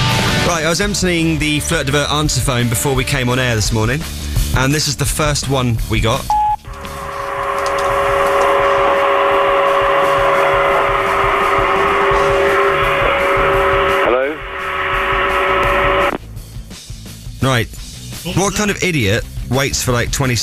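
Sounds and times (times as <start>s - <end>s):
speech: 0.5s - 6.4s, 17.6s - 20.4s
vacuum cleaner running: 6.7s - 16.2s.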